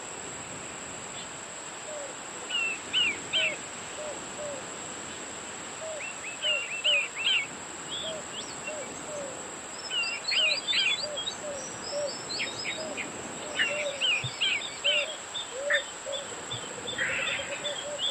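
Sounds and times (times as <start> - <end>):
birds calling in Guam: 1.9 - 4.7, 5.8 - 18.0.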